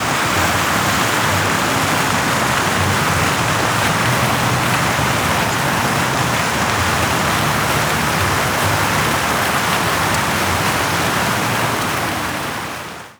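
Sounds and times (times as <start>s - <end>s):
water feature splashing: 0.0s - 13.1s.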